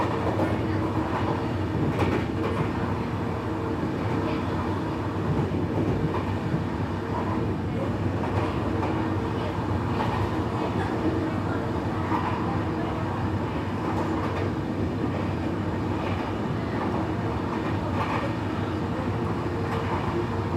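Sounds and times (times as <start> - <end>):
train rattling on tracks during an evening ride: 0.0 - 20.5.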